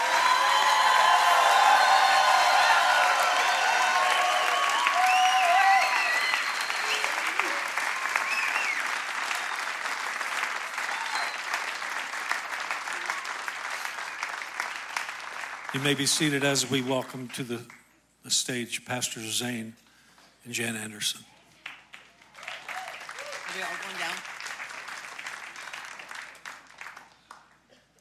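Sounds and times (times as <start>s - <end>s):
voices cheering: 0.0s - 10.0s, 10.6s - 11.8s, 22.3s - 24.2s
audience applause welcoming new pastors: 0.0s - 17.6s, 21.6s - 27.9s
speech: 15.8s - 21.4s.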